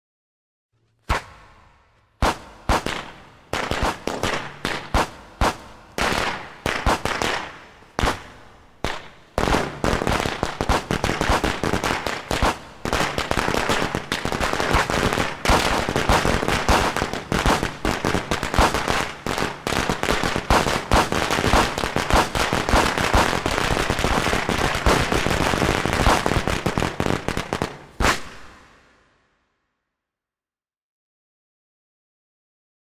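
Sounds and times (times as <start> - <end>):
firecrackers: 1.0 - 29.3.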